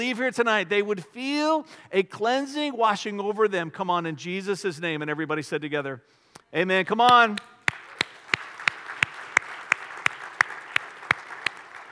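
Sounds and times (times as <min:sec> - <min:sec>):
speech: 0:00.0 - 0:07.5
steady evenly spaced sharp claps: 0:07.0 - 0:11.9
audience applause: 0:07.7 - 0:11.9.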